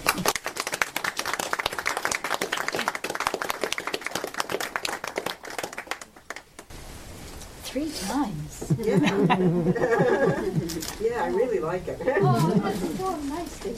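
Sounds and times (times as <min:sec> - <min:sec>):
audience applause welcoming an author to a book event: 0:00.0 - 0:06.6
speech: 0:07.7 - 0:13.7
laughter: 0:08.7 - 0:11.0, 0:12.0 - 0:13.0.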